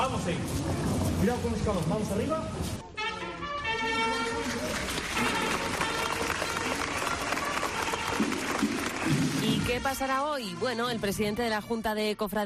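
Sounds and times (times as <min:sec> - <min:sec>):
speech: 0:00.2 - 0:02.9, 0:09.4 - 0:12.4
street crowd applauding a procession: 0:04.1 - 0:10.0.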